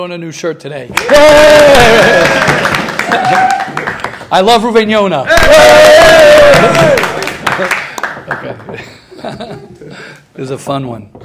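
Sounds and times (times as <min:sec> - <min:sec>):
speech: 0:00.0 - 0:11.2
audience clapping: 0:00.9 - 0:04.7, 0:05.3 - 0:09.0
laughter: 0:06.6 - 0:10.2.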